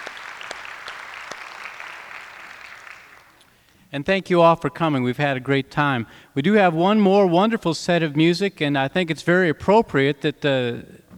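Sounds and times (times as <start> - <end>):
audience applause: 0.0 - 3.6
speech: 3.9 - 11.0.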